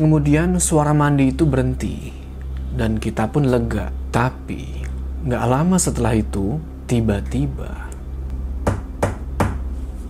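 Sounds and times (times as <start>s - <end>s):
speech: 0.0s - 7.8s
knocking on a door: 8.6s - 9.6s.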